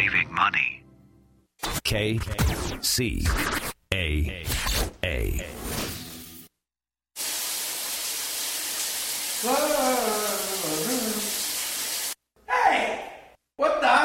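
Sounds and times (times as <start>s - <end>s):
person's voice: 0.0s - 0.8s, 1.7s - 5.7s, 9.4s - 11.3s, 12.4s - 14.0s
speech: 0.0s - 0.8s, 1.9s - 4.7s
shower running: 7.2s - 12.2s.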